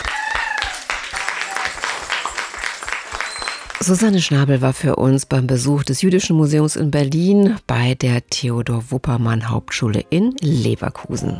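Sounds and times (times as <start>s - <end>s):
applause for a class: 0.0s - 4.4s
speech: 3.8s - 11.3s.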